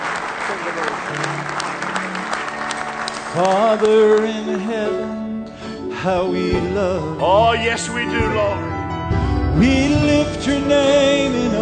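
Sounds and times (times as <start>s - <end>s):
audience hand clapping: 0.0s - 4.8s
speech: 3.4s - 5.2s, 6.0s - 8.7s, 9.6s - 11.5s.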